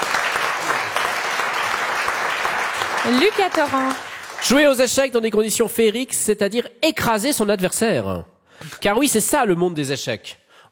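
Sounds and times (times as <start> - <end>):
audience applause: 0.0 - 5.0
speech: 3.0 - 10.7.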